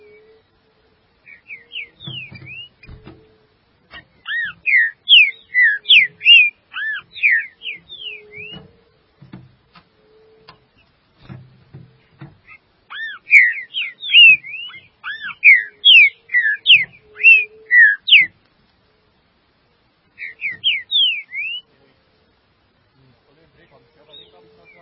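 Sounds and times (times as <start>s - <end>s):
green-winged saltator whistled slurs: 1.3s - 3.0s, 3.9s - 8.7s, 12.5s - 18.3s, 20.2s - 21.7s.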